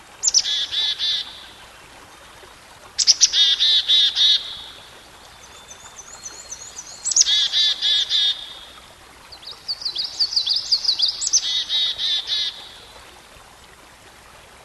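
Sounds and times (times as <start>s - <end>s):
songbird song: 0.0s - 13.8s.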